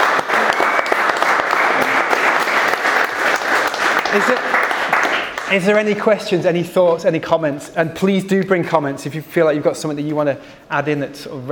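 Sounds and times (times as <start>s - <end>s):
crowd applauding: 0.0s - 6.1s
speech: 4.1s - 4.6s, 5.5s - 11.5s.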